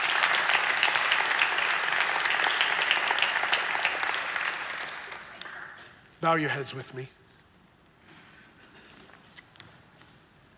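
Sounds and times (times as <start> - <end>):
audience applause: 0.0 - 6.0
speech: 6.2 - 7.2.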